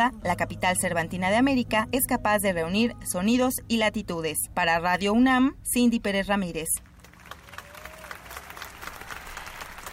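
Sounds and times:
speech: 0:00.0 - 0:06.9
crowd applauding at a festival: 0:06.9 - 0:09.9.

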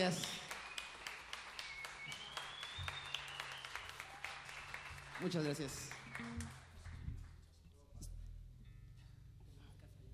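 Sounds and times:
speech: 0:00.0 - 0:00.4, 0:05.2 - 0:06.6
audience applause: 0:00.0 - 0:07.0.

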